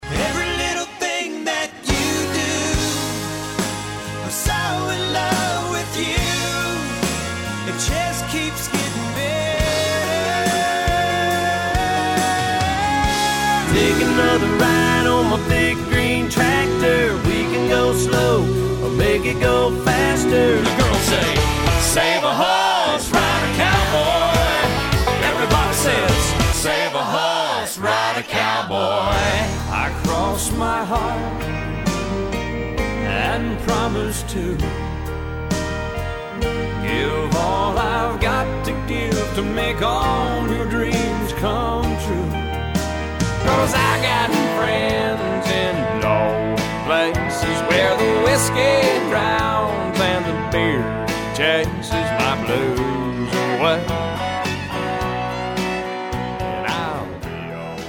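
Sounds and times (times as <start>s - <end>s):
country music: 0.0s - 57.8s.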